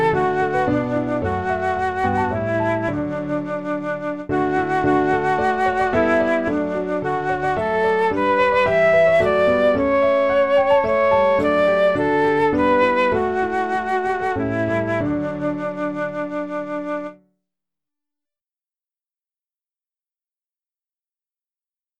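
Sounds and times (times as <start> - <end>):
piano ensemble: 0.0 - 17.2.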